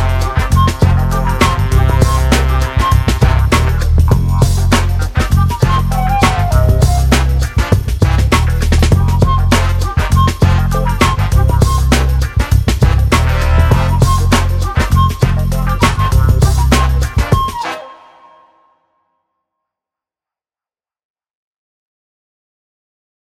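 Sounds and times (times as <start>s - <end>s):
lounge music: 0.0s - 18.5s.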